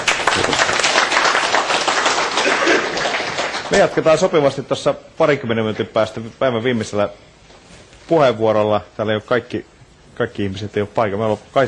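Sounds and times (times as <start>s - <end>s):
audience applause: 0.0s - 4.3s
speech: 3.7s - 7.4s, 8.1s - 11.6s.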